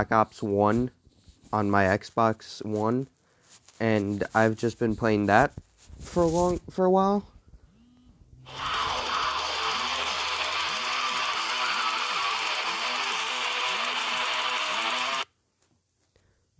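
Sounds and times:
speech: 0.0s - 3.2s, 3.8s - 7.3s, 8.5s - 8.8s
alarm buzzing with low warbling pulse: 7.7s - 15.2s.

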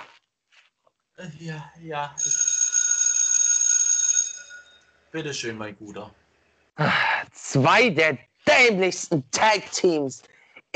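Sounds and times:
speech: 1.2s - 2.4s, 5.1s - 6.2s, 6.8s - 10.7s
bright metallic bell ringing: 2.2s - 5.1s.

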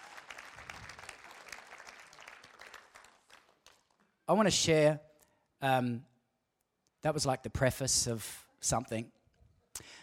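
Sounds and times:
audience applause: 0.0s - 3.9s
speech: 4.3s - 6.1s, 7.0s - 9.2s, 9.8s - 10.0s.

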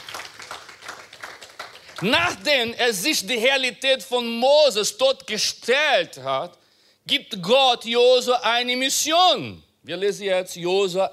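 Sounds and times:
audience applause: 0.0s - 2.4s
speech: 2.0s - 11.1s.

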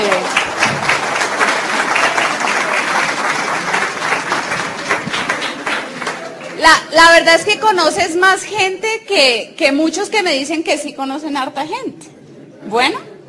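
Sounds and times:
audience applause: 0.0s - 6.6s
speech: 7.0s - 13.1s.

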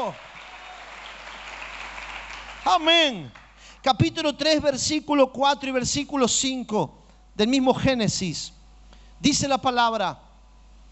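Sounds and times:
speech: 0.0s - 0.3s, 2.6s - 8.6s, 9.2s - 10.2s
audience applauding: 0.0s - 3.6s.

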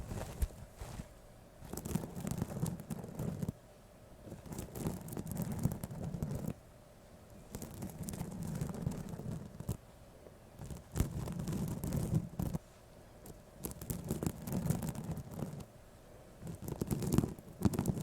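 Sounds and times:
ear-to-ear tapping scratching and brushing: 0.0s - 3.6s, 4.3s - 6.6s, 7.4s - 9.8s, 10.6s - 12.6s, 13.2s - 15.7s, 16.4s - 18.0s.

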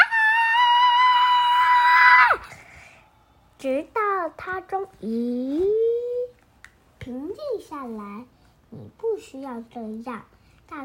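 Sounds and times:
voice imitating a child's loud screaming: 0.0s - 2.5s
speech: 4.4s - 5.8s, 7.1s - 10.8s.

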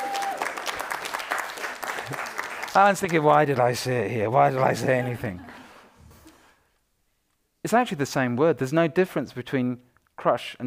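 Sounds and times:
audience applause at a church talk: 0.0s - 5.4s
speech: 2.8s - 5.5s, 7.7s - 10.6s
laughter: 4.4s - 5.8s.

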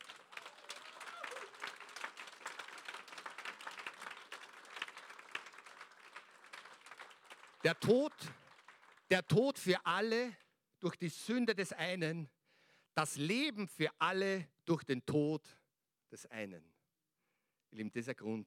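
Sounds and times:
audience applause: 0.0s - 9.1s
speech: 7.6s - 8.4s, 9.1s - 12.4s, 13.0s - 16.7s, 17.7s - 18.4s.

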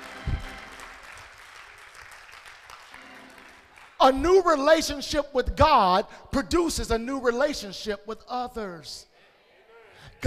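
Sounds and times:
audience clapping hands: 0.0s - 4.6s
speech: 4.0s - 9.1s.

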